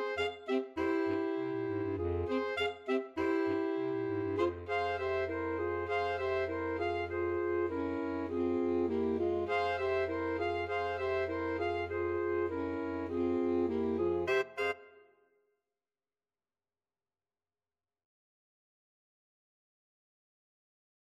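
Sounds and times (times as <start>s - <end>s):
flexible mixed ensemble of 4 players: 0.0s - 14.8s.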